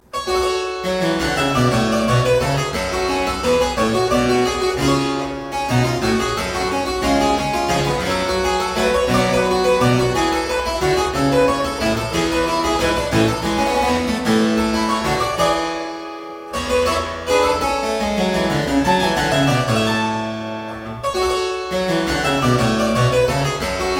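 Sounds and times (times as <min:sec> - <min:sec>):
courante from a suite in G minor: 0:00.0 - 0:23.9.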